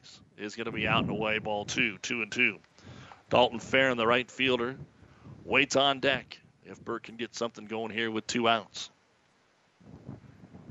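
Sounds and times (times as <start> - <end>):
gusting wind buffeting the microphone: 0.1 - 2.0, 2.8 - 7.1, 9.8 - 10.7
speech: 0.4 - 2.7, 3.3 - 4.9, 5.5 - 8.9.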